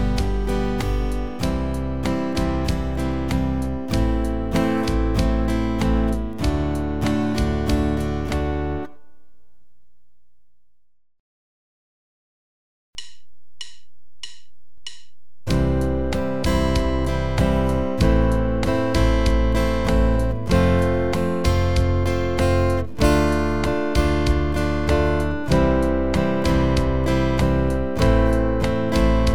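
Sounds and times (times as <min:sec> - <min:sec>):
guitar chord progressions: 0:00.0 - 0:09.2, 0:15.5 - 0:29.3.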